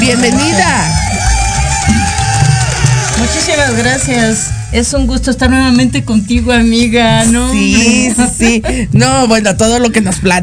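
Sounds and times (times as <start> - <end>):
applause: 0.0 - 4.6
speech: 0.1 - 0.9, 3.6 - 10.4.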